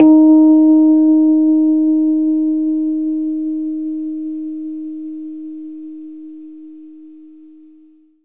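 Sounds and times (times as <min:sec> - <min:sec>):
Rhodes electric piano playing D sharp: 0:00.0 - 0:05.4.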